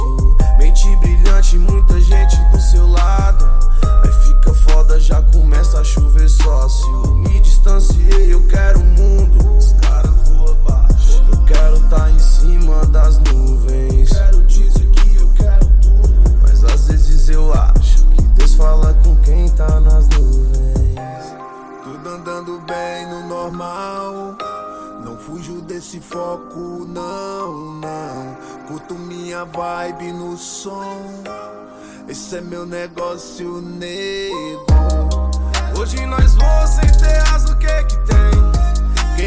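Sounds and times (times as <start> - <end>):
deep hip hop bass: 0.0 - 21.2, 34.7 - 39.2.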